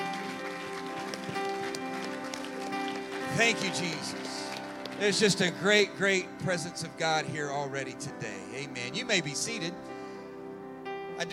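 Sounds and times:
crowd clapping: 0:00.0 - 0:06.4
speech: 0:03.4 - 0:04.4, 0:05.0 - 0:09.9, 0:11.2 - 0:11.3.

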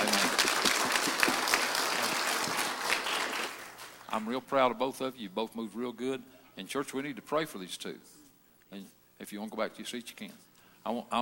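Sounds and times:
church audience applause: 0:00.0 - 0:04.1
speech: 0:04.2 - 0:11.2.

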